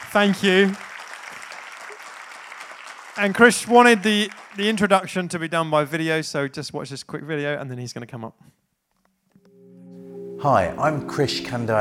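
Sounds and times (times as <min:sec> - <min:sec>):
audience applause: 0:00.0 - 0:05.5
speech: 0:00.1 - 0:00.8, 0:03.2 - 0:08.6, 0:10.4 - 0:11.8.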